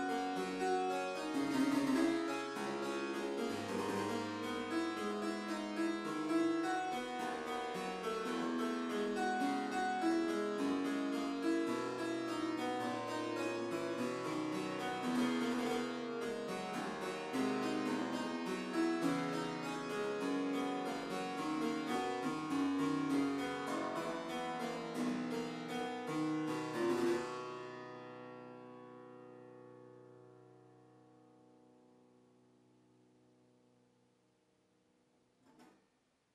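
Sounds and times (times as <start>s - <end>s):
harpsichord music: 0.0s - 28.7s.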